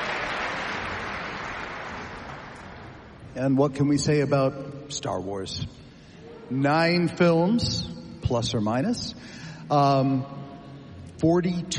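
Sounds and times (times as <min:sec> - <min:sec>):
concert audience applause: 0:00.0 - 0:03.1
speech: 0:03.4 - 0:05.8, 0:06.5 - 0:10.4, 0:11.2 - 0:11.7.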